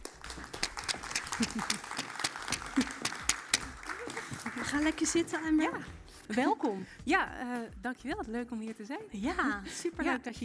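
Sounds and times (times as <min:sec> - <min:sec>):
audience applause: 0:00.0 - 0:05.2
laughter: 0:01.1 - 0:04.9
speech: 0:01.4 - 0:01.9, 0:04.7 - 0:10.4.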